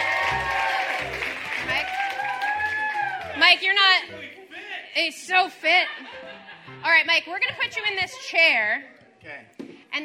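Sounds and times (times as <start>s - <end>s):
audience applause: 0.0s - 3.6s
people cheering: 0.0s - 3.6s
speech: 3.4s - 4.2s, 5.0s - 10.0s.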